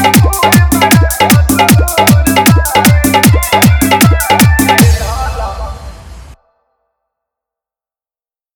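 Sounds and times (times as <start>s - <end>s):
dholki bass dance mix: 0.0s - 6.4s.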